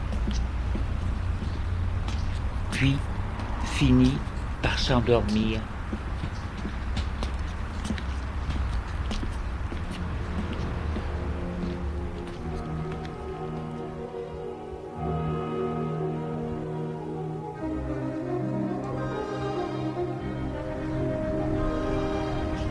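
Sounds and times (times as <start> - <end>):
footsteps on night streets: 0.0 - 14.9, 20.6 - 22.6
rain-like noise: 0.0 - 19.2, 20.0 - 22.6
speech: 2.8 - 3.1, 3.8 - 6.0
sustained musical tones: 10.0 - 22.6.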